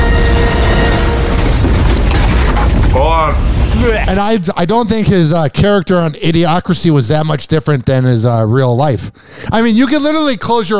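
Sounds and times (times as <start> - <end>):
spaceship crash and explosion roar: 0.0 - 4.5
speech: 4.1 - 10.7.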